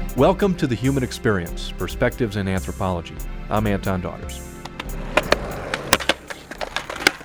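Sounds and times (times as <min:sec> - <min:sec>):
speech: 0:00.2 - 0:04.5
skateboard wheels rolling over concrete: 0:05.1 - 0:07.2.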